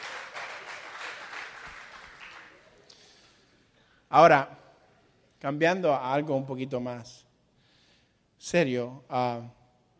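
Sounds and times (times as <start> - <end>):
audience applause: 0.0 - 2.9
speech: 4.1 - 4.6, 5.4 - 7.2, 8.4 - 9.6.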